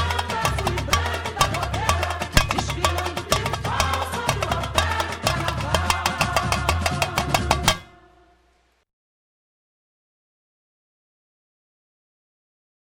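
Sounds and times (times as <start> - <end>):
drum kit: 0.0 - 8.0.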